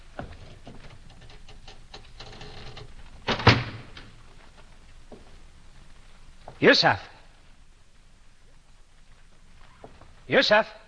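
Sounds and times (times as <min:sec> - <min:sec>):
door being shut: 0:03.2 - 0:04.1
speech: 0:06.6 - 0:07.1, 0:10.3 - 0:10.8.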